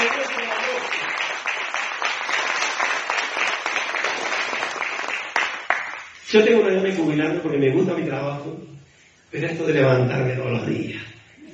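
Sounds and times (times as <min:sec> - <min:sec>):
crowd applause: 0:00.0 - 0:06.1
speech: 0:06.3 - 0:11.1.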